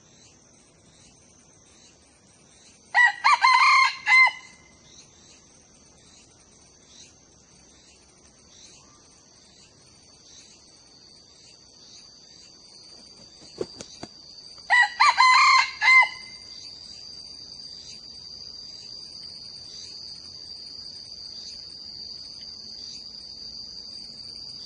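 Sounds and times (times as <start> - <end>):
young male red junglefowl crowing: 3.0 - 4.7, 14.7 - 16.5.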